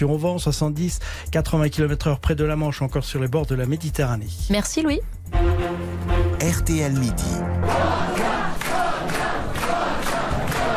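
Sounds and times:
speech: 0:00.0 - 0:08.6
crowd of supporters cheering and shouting: 0:07.6 - 0:10.7.

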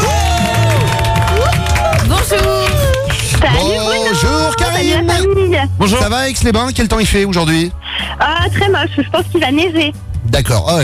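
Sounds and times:
audience applause: 0:00.0 - 0:04.9
speech: 0:05.6 - 0:10.8.

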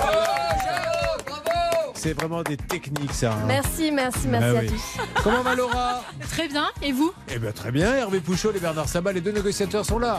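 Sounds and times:
studio audience applause for arriving guest: 0:00.0 - 0:03.8
speech: 0:02.0 - 0:10.1
laughter: 0:08.3 - 0:10.1.

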